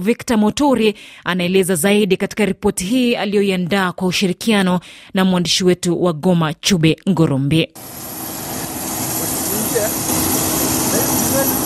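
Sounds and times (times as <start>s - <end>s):
speech: 0.0s - 8.1s
aircraft engine drone at Goma airport: 7.8s - 11.6s.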